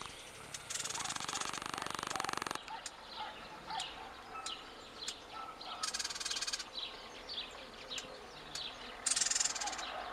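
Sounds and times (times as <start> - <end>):
Eurasian blackcap tac calls and rattle: 0.0 - 6.7, 7.9 - 9.9
other birds: 0.0 - 10.1.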